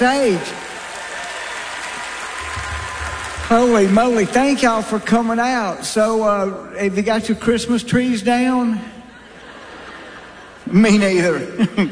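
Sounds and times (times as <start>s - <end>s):
speech: 0.0s - 0.6s, 3.5s - 9.0s, 10.7s - 11.9s
audience applause at the Grand Ole Opry: 0.0s - 5.3s
laughter: 8.9s - 11.9s.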